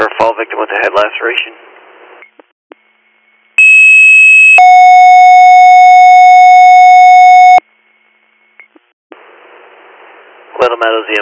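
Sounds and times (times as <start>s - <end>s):
speech: 0.4s - 1.7s
EMS dispatch pager alert tones: 3.6s - 7.6s.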